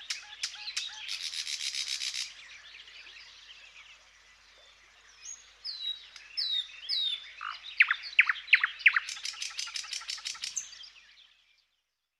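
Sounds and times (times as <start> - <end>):
thrush nightingale song: 0.0 - 11.9.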